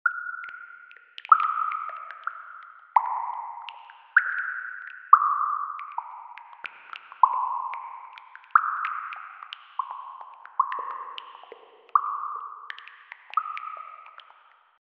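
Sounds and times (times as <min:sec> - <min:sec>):
water dripping in a cave: 0:00.0 - 0:14.7.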